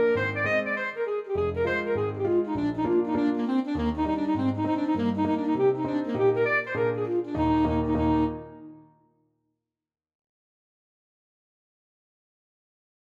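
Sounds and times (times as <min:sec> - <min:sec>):
saxophone playing a hornpipe: 0:00.0 - 0:09.0.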